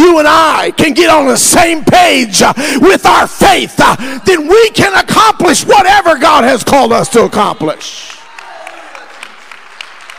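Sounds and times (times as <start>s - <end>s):
speech: 0.2s - 8.1s
audience clapping in a steady rhythm: 7.7s - 10.1s.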